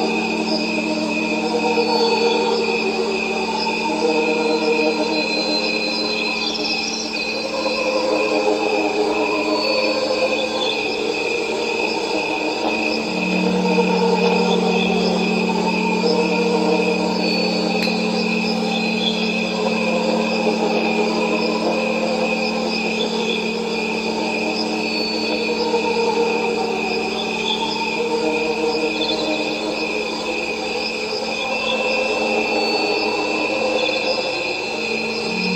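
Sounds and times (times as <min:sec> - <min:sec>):
crickets chirping: 0:00.0 - 0:35.5
tuning forks ringing: 0:13.1 - 0:23.7, 0:35.0 - 0:35.5.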